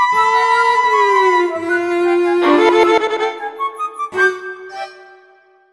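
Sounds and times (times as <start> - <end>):
puzzle music trio: 0.1 - 5.6.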